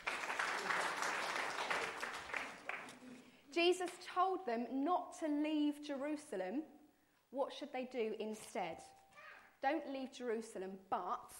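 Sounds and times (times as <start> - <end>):
group clapping: 0.0 - 3.4
speech: 3.6 - 9.0, 9.6 - 11.3.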